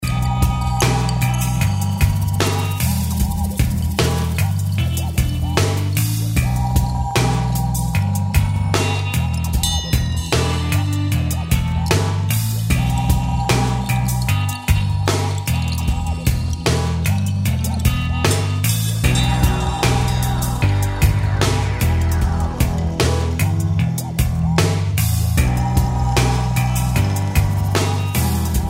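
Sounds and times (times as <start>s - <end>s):
blues music: 0.0s - 28.6s.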